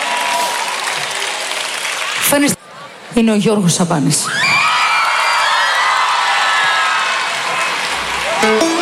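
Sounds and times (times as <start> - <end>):
warm applause for a show's producer: 0.0 - 2.6, 4.9 - 8.7
speech: 2.3 - 4.6.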